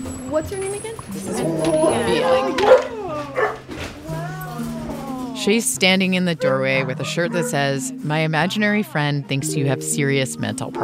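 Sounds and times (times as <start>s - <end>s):
dogs barking and yipping at a small two-story house: 0.0s - 5.0s, 6.1s - 8.0s
speech: 0.3s - 2.8s, 5.4s - 10.8s.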